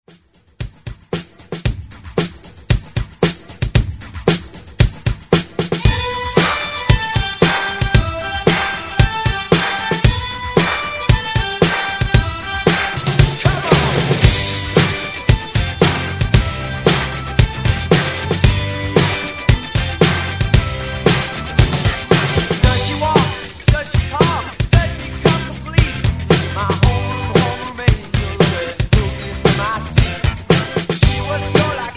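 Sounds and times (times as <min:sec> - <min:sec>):
80s style drum beat at 114 bpm: 0:00.1 - 0:31.9.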